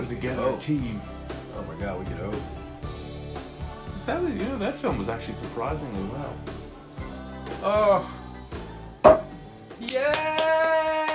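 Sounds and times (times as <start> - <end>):
speech: 0.1 - 2.6, 4.0 - 6.7, 7.5 - 8.2, 9.8 - 10.4
hands clapping: 9.1 - 11.1.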